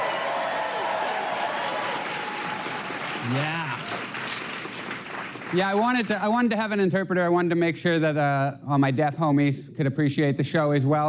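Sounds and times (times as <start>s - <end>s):
audience applause: 0.0s - 6.2s
speech: 3.2s - 3.6s, 5.5s - 11.0s.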